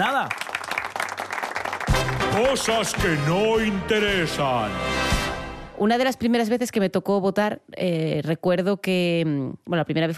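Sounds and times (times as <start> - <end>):
applause: 0.0 - 3.8
speech: 2.4 - 5.2, 5.8 - 10.1.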